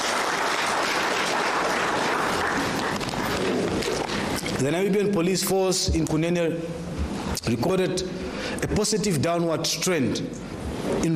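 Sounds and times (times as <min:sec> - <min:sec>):
audience applause: 0:00.0 - 0:04.4
speech: 0:04.6 - 0:11.1.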